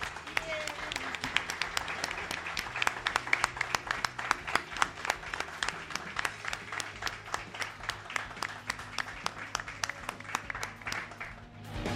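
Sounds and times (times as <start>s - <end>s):
loud audience applause: 0.0s - 11.8s.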